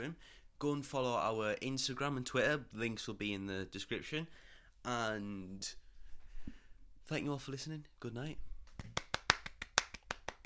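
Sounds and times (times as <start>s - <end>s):
speech: 0.0s - 5.8s, 7.1s - 9.0s
sharp hand claps: 8.6s - 10.4s.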